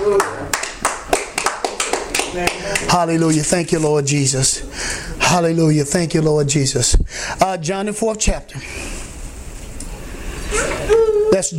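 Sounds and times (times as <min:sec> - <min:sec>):
church congregation clapping: 0:00.0 - 0:03.5
speech: 0:02.3 - 0:09.0, 0:11.3 - 0:11.5.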